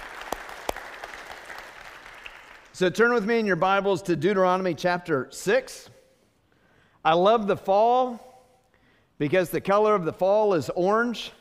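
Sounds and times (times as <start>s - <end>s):
church congregation applauding to welcome guests at the Loretto campus: 0.0s - 3.0s
speech: 2.8s - 6.0s, 7.0s - 8.3s, 9.2s - 11.3s.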